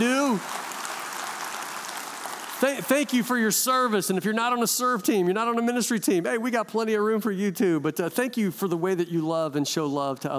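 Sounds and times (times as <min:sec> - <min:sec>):
audience applause: 0:00.0 - 0:03.3
speech: 0:02.6 - 0:10.3.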